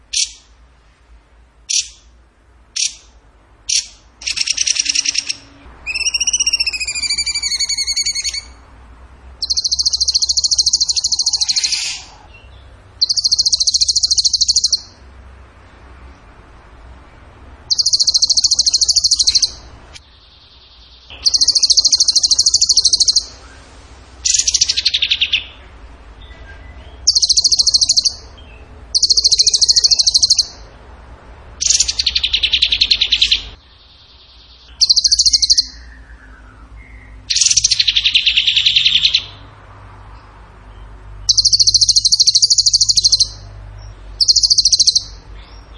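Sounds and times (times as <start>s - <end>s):
bird singing rapid high trills: 3.7s - 8.7s, 9.4s - 15.0s, 17.7s - 19.7s, 20.3s - 23.6s, 24.2s - 25.6s, 26.5s - 30.7s, 31.6s - 39.4s, 41.3s - 43.5s, 44.2s - 45.7s.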